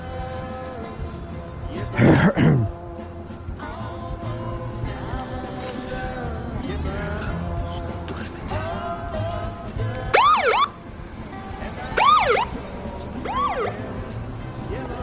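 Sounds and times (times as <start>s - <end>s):
low rumble of street noise: 0.0s - 15.0s
police car siren wailing: 10.1s - 10.8s, 11.8s - 12.6s, 13.2s - 13.8s.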